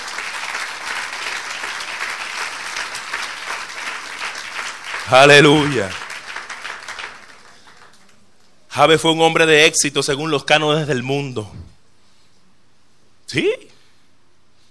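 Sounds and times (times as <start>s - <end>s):
audience applause: 0.0s - 8.2s
speech: 5.1s - 6.0s, 8.8s - 11.7s, 13.3s - 13.6s.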